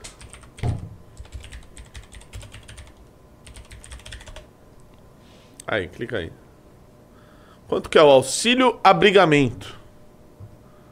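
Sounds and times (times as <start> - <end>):
computer keyboard typing a Google search: 0.0 - 4.5
speech: 5.7 - 6.4, 7.7 - 9.8.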